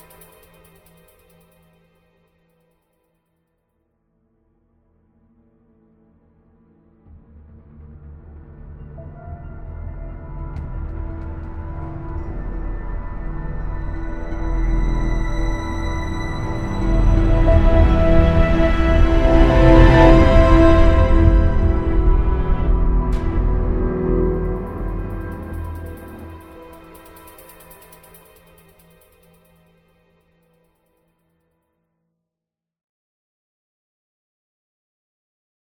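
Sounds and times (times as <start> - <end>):
tense room tone: 7.2 - 29.3.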